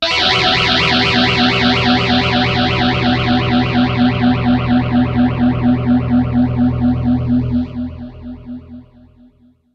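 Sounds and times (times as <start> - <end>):
dirty guitar through a PT9 Pro: 0.0 - 9.4.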